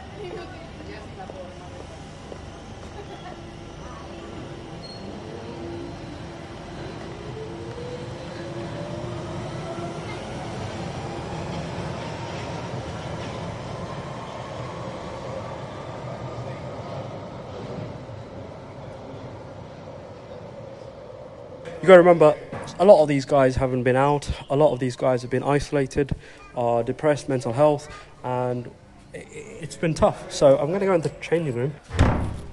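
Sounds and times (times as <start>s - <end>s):
train rumbling past: 0.0s - 31.8s
faint tonal squeal climbing in pitch: 2.5s - 7.0s
speech: 21.8s - 32.1s.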